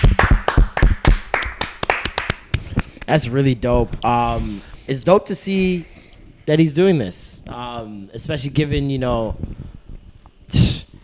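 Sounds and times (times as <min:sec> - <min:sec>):
hand claps: 0:00.0 - 0:03.2
speech: 0:03.1 - 0:09.6.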